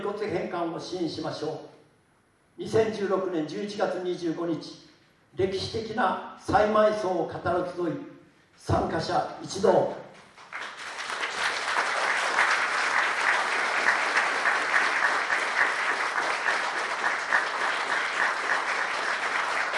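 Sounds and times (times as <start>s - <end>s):
speech: 0.0s - 1.8s, 2.6s - 10.0s
audience applauding to adopt a resolution: 10.4s - 19.7s.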